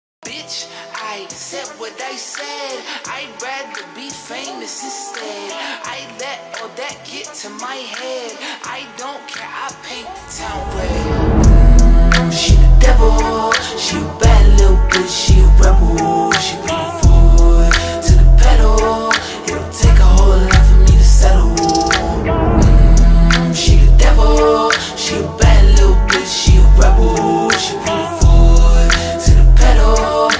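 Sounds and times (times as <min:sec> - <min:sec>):
slowed reverb music: 0:10.0 - 0:30.3.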